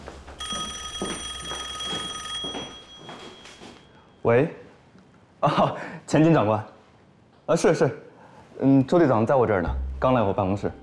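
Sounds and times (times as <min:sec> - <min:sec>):
electronic telephone ringing: 0:00.4 - 0:03.8
speech: 0:04.2 - 0:04.6, 0:05.4 - 0:06.7, 0:07.5 - 0:08.0, 0:08.6 - 0:10.8.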